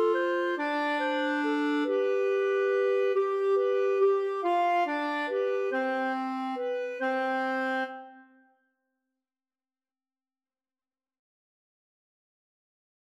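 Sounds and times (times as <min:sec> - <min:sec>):
waltz music: 0:00.0 - 0:07.9.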